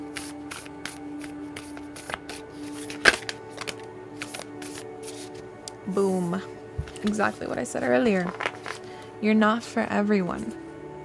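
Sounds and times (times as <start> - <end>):
cards being shuffled: 0.1 - 5.4, 6.8 - 9.1
card drawn with a snap: 0.2 - 5.8
speech: 5.9 - 8.5, 9.2 - 10.6.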